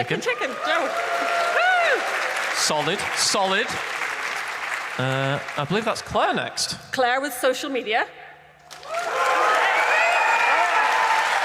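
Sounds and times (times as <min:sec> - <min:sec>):
speech: 0:00.0 - 0:01.1, 0:02.6 - 0:04.0, 0:05.0 - 0:08.2
audience cheering: 0:00.0 - 0:05.7, 0:08.7 - 0:11.4.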